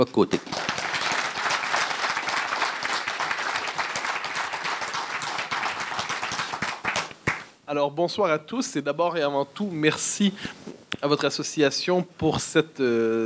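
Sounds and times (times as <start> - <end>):
speech: 0.0 - 0.7, 7.7 - 13.2
audience applause: 0.3 - 7.5.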